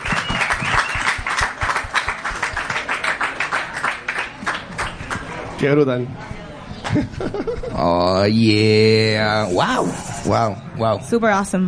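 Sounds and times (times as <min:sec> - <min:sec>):
crowd applause: 0:00.0 - 0:05.4
speech: 0:05.6 - 0:06.3, 0:06.9 - 0:11.6
laughter: 0:06.8 - 0:08.2.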